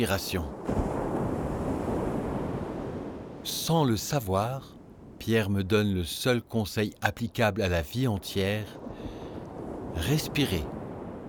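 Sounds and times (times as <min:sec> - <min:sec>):
speech: 0:00.0 - 0:00.8, 0:03.4 - 0:09.2, 0:10.0 - 0:10.8
waves crashing on sand: 0:00.0 - 0:04.4, 0:08.2 - 0:11.2.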